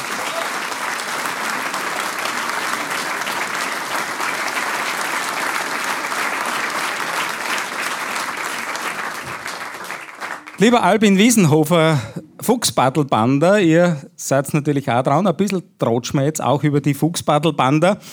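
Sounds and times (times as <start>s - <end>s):
audience applause: 0.0s - 10.9s
speech: 10.6s - 18.1s.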